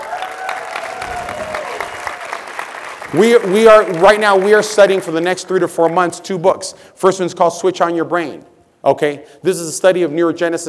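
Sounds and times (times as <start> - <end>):
audience round of applause: 0.0 - 5.0
speech: 3.1 - 10.6.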